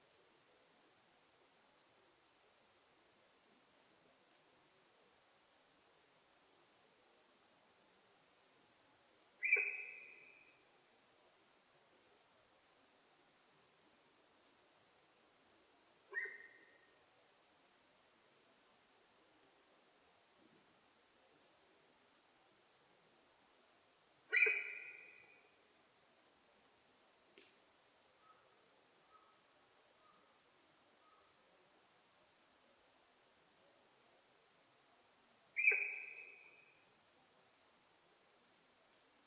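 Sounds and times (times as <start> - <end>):
hiss: 0.0 - 39.2
sika deer whistle call: 24.3 - 25.2, 35.6 - 36.5.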